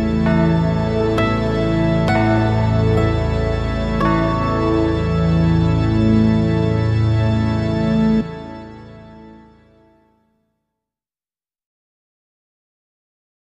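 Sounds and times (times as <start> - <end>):
evening bells ringing: 0.2 - 8.5.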